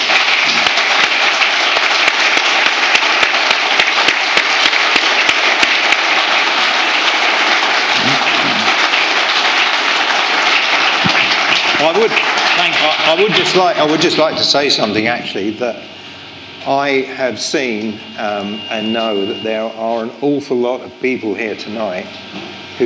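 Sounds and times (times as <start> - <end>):
audience applause: 0.0 - 14.3
speech: 12.0 - 16.0, 16.6 - 22.8.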